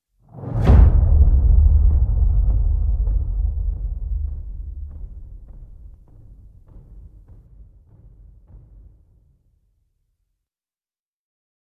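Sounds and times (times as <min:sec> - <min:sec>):
drums: 0:00.3 - 0:09.2.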